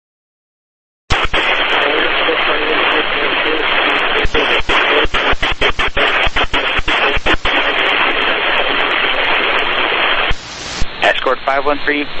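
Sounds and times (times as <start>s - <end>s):
rapid crackling clicks: 1.1s - 10.4s
loud radio static: 1.1s - 12.1s
speech: 11.7s - 12.1s.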